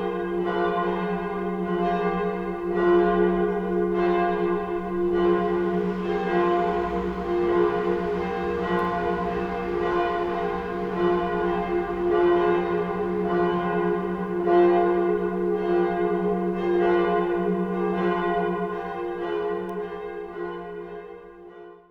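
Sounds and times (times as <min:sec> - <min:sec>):
two bells ringing: 0:00.0 - 0:19.8.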